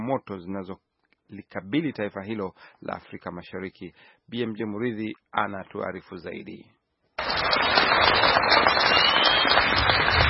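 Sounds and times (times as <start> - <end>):
speech: 0.0 - 10.2
clapping: 7.2 - 10.2
villagers cheering in Kogelo, Siaya County, Kenya: 7.2 - 10.2.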